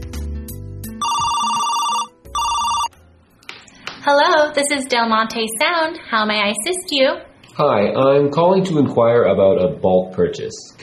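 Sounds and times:
telephone ringing: 0:01.0 - 0:02.9
speech: 0:04.0 - 0:10.8.

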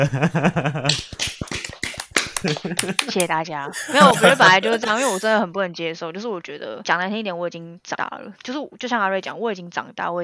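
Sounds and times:
laughter: 0:00.0 - 0:00.9, 0:01.9 - 0:05.4
speech: 0:00.0 - 0:01.2, 0:02.4 - 0:10.2
applause: 0:01.5 - 0:05.3.

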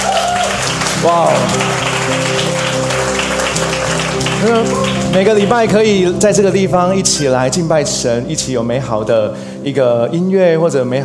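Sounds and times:
warm applause for worship team: 0:00.0 - 0:06.2
speech: 0:01.0 - 0:02.5, 0:04.4 - 0:11.0.

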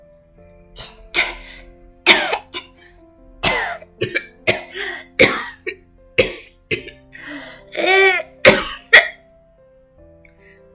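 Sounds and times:
child coughing: 0:02.1 - 0:02.7, 0:03.5 - 0:07.0, 0:07.8 - 0:09.2.

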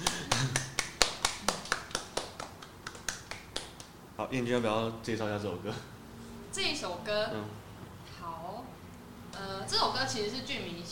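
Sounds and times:
hands clapping: 0:00.0 - 0:04.0
speech: 0:04.3 - 0:06.0, 0:06.6 - 0:07.6, 0:09.7 - 0:10.8.

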